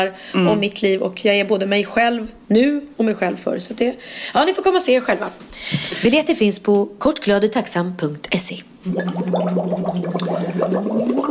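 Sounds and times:
speech: 0.0 - 11.2
water bubbling: 8.8 - 11.2.

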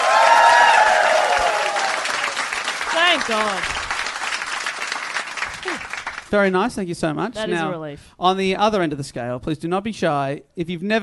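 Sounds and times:
whoops and cheers: 0.0 - 2.4
audience applause: 0.0 - 6.4
speech: 3.2 - 3.7, 6.3 - 11.0.

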